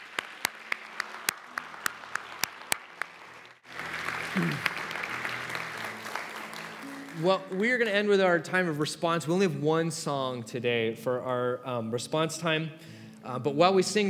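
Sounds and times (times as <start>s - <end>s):
audience applause: 0.0s - 7.9s
speech: 4.4s - 4.7s, 7.2s - 14.0s.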